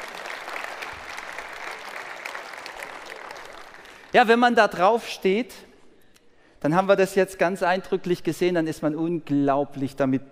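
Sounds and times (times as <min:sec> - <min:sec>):
audience applause: 0:00.0 - 0:04.1
speech: 0:04.1 - 0:05.7, 0:06.6 - 0:10.2.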